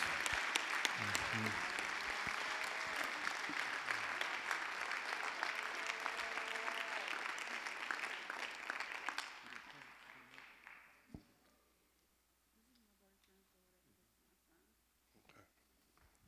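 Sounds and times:
audience hand clapping: 0:00.0 - 0:11.4.

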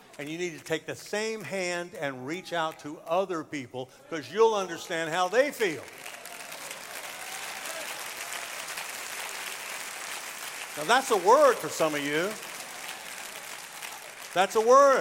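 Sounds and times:
speech: 0:00.2 - 0:06.2, 0:10.8 - 0:12.5, 0:14.3 - 0:15.0
audience clapping: 0:05.2 - 0:15.0.

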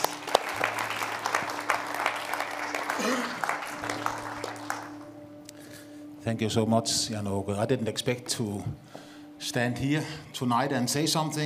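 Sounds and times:
audience applause: 0:00.0 - 0:05.2
speech: 0:06.3 - 0:11.4.

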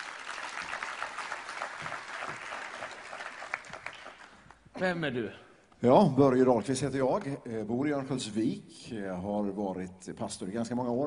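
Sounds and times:
audience applause: 0:00.0 - 0:04.5
speech: 0:04.8 - 0:11.0.

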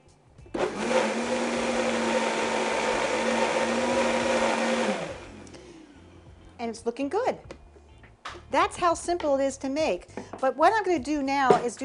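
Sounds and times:
blender blending a thick mixture: 0:00.5 - 0:05.4
speech: 0:06.6 - 0:07.6, 0:08.5 - 0:11.8.

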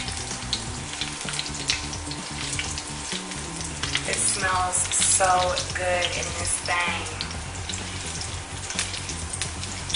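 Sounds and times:
food sizzling in hot oil as it marinates: 0:00.0 - 0:09.9
speech: 0:04.4 - 0:07.2.

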